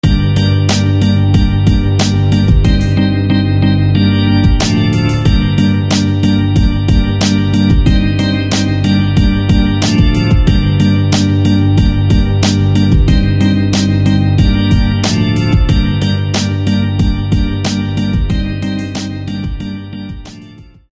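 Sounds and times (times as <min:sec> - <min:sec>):
organ: 0:00.0 - 0:20.7.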